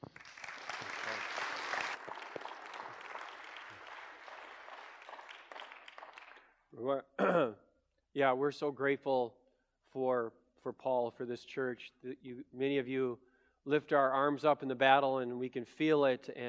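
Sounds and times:
audience applause at a church welcoming a guest speaker: 0:00.0 - 0:06.5
speech: 0:06.8 - 0:07.6, 0:08.2 - 0:09.4, 0:10.0 - 0:16.4.

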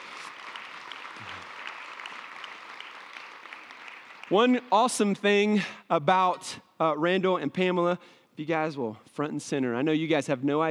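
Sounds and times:
audience applause: 0:00.0 - 0:04.6
speech: 0:04.3 - 0:10.6.

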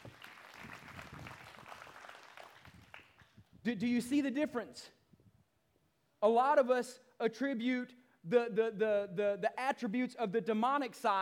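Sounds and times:
audience hand clapping: 0:00.0 - 0:03.5
speech: 0:03.6 - 0:05.0, 0:06.2 - 0:11.2.

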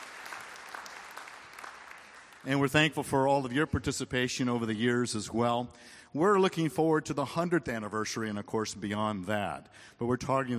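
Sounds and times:
audience applause: 0:00.0 - 0:02.5
speech: 0:02.4 - 0:10.5.

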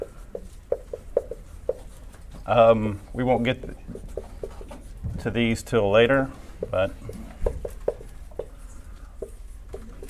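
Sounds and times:
writing Greek words on a board: 0:00.0 - 0:02.0, 0:03.9 - 0:04.9, 0:06.6 - 0:08.6, 0:09.2 - 0:10.0
speech: 0:02.5 - 0:03.9, 0:05.2 - 0:07.2.

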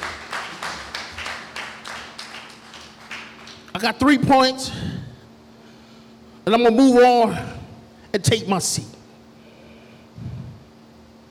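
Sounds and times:
audience clapping hands in rhythm: 0:00.0 - 0:04.0
speech: 0:03.8 - 0:04.9, 0:06.5 - 0:07.5, 0:08.1 - 0:09.0.

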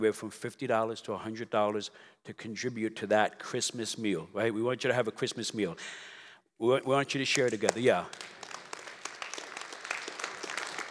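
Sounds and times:
speech: 0:00.0 - 0:08.4
audience clapping: 0:07.3 - 0:10.9.

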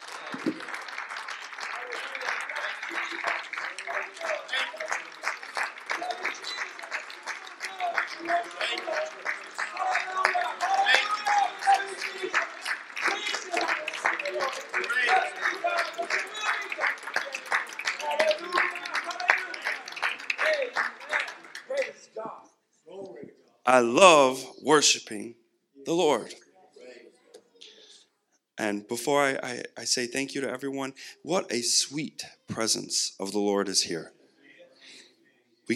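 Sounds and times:
hand clapping: 0:00.0 - 0:22.3
speech: 0:08.4 - 0:09.3, 0:23.7 - 0:26.4, 0:28.6 - 0:34.2.

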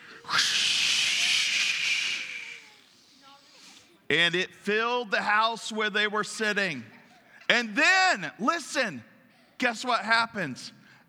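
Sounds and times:
crowd imitating a roaring windstorm with their voices: 0:00.3 - 0:02.8
speech: 0:04.1 - 0:10.8.

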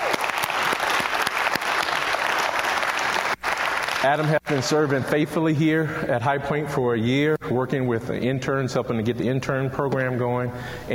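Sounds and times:
audience applause: 0:00.0 - 0:05.2
speech: 0:04.0 - 0:10.9.

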